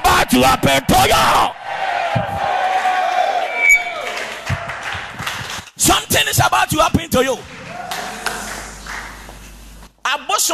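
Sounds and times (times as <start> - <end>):
speech: 0.3 - 2.4, 5.8 - 7.5, 10.1 - 10.5
audience screaming: 1.6 - 5.1, 7.5 - 9.0.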